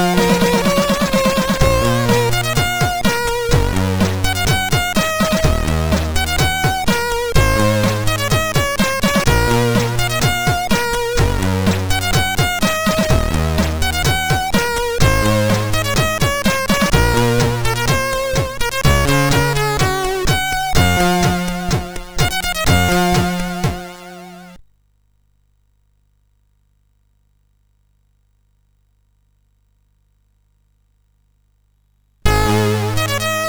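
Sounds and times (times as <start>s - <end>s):
MOS6581R4 SID chip music: 0.0s - 24.6s, 32.3s - 33.4s.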